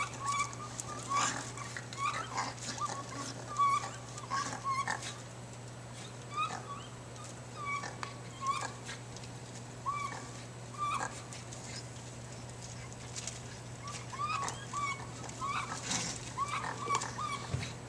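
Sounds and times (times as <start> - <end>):
raccoons chirping during a fight: 0.0 - 5.2, 6.0 - 8.9, 9.8 - 11.2, 13.8 - 17.6.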